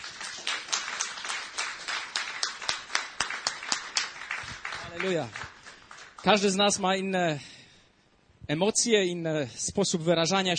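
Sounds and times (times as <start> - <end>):
audience applause: 0.0 - 6.8
speech: 5.0 - 5.5, 6.2 - 7.5, 8.5 - 10.5.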